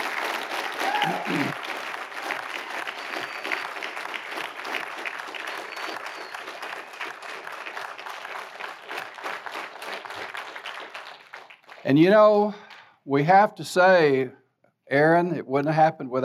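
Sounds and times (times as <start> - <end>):
audience applause for the choir: 0.0 - 11.9
speech: 1.0 - 1.7, 11.9 - 16.2.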